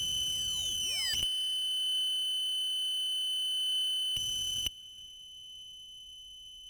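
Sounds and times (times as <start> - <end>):
tuning noise: 0.0 - 4.7.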